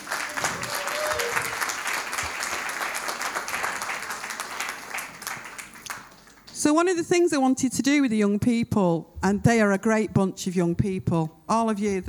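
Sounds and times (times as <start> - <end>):
crowd applauding: 0.0 - 6.6
speech: 6.6 - 12.0.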